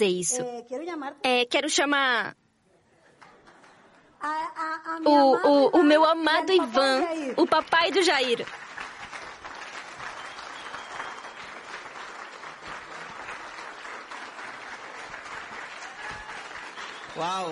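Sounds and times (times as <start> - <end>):
speech: 0.0 - 2.4, 4.2 - 8.6, 17.2 - 17.5
audience applause: 7.0 - 17.5.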